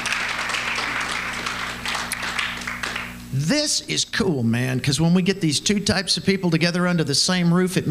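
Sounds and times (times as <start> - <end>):
audience applause: 0.0 - 3.2
speech: 3.3 - 7.9.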